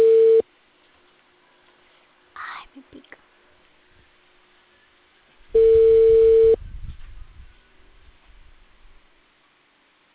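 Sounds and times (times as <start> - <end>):
telephone busy tone on an unanswered call: 0.0 - 0.4, 5.6 - 6.6.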